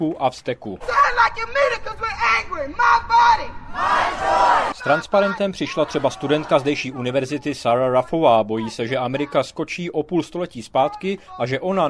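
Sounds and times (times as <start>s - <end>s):
speech: 0.0s - 11.8s
protest crowd chanting outside courthouse: 3.7s - 7.2s.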